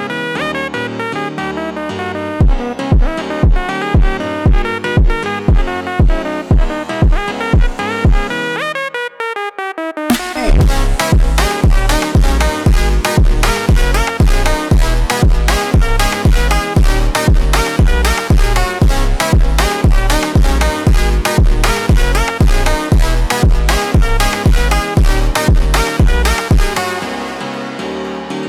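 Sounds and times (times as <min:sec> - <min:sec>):
slowed funk music: 0:00.3 - 0:08.7, 0:10.1 - 0:28.2.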